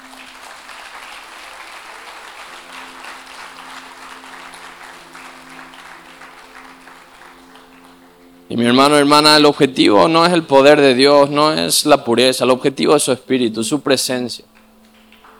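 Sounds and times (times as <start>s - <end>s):
audience applause: 0.0s - 8.5s
speech: 8.5s - 14.6s.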